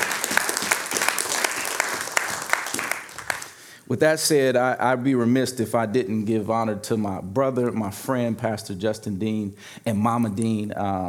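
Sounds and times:
audience clapping: 0:00.0 - 0:03.6
speech: 0:03.9 - 0:11.0.

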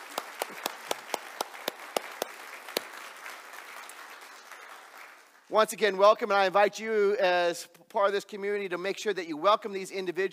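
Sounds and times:
audience round of applause: 0:00.0 - 0:05.5
speech: 0:05.5 - 0:10.3.

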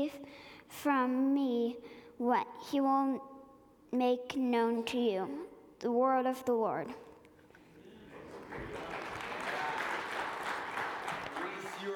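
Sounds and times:
speech: 0:00.0 - 0:03.3, 0:03.9 - 0:07.1
audience applause: 0:08.1 - 0:11.9.

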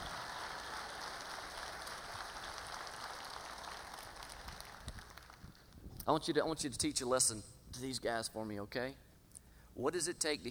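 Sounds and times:
crowd clapping: 0:00.0 - 0:05.7
speech: 0:06.1 - 0:09.0, 0:09.8 - 0:10.4.

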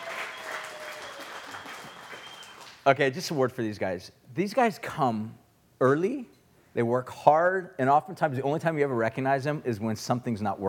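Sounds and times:
audience applause: 0:00.0 - 0:02.8
speech: 0:02.8 - 0:10.6.

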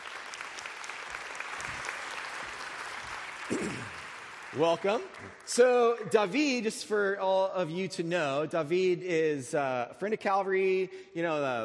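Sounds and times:
congregation clapping: 0:00.0 - 0:06.6
speech: 0:04.5 - 0:11.6.

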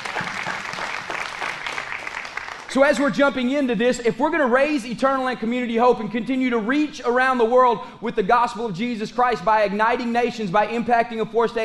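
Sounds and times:
audience applause: 0:00.0 - 0:02.8
speech: 0:02.7 - 0:11.6.

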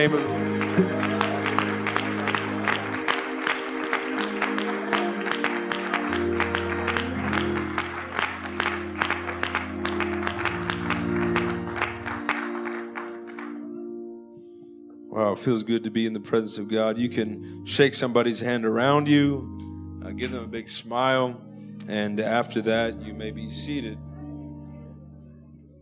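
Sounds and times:
speech: 0:00.0 - 0:01.1, 0:15.4 - 0:19.6, 0:20.2 - 0:24.1
audience applause: 0:00.0 - 0:13.6
sustained organ-like chords: 0:00.0 - 0:25.8.

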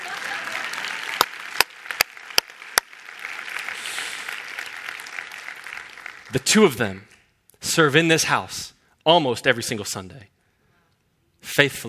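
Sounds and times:
audience clapping: 0:00.0 - 0:07.2
speech: 0:06.3 - 0:10.4, 0:11.4 - 0:11.8.

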